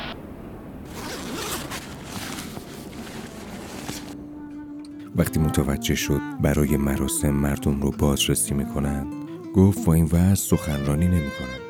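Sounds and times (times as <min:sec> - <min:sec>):
bag zipper opened during a bag search: 0:00.9 - 0:04.2
speech: 0:05.2 - 0:11.6.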